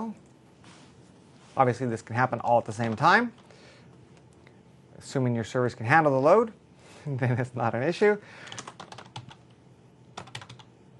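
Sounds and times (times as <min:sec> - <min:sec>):
speech: 0:01.6 - 0:03.4, 0:05.0 - 0:08.6
quiet computer keyboard typing: 0:08.4 - 0:09.5, 0:10.1 - 0:10.7.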